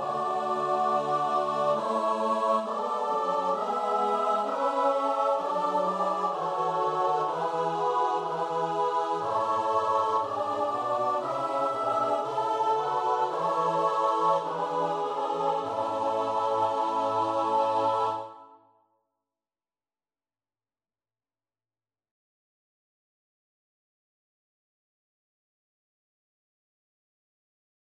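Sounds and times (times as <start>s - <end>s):
choir singing: 0.0s - 18.6s.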